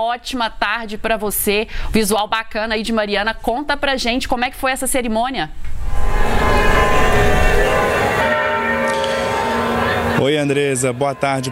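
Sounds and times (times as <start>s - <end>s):
speech: 0.0s - 6.3s, 10.2s - 11.5s
low rumble: 5.7s - 9.4s
church bells ringing: 5.8s - 11.5s.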